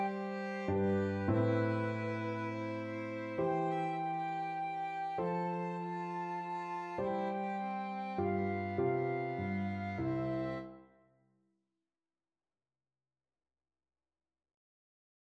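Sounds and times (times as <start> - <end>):
minuet played as violin and flute duet: 0.0 - 10.8.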